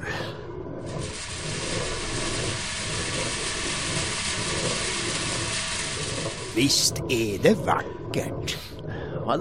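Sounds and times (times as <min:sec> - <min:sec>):
windmill millstones grinding grain into flour: 0:01.0 - 0:07.7
speech: 0:06.6 - 0:08.7, 0:09.3 - 0:09.4.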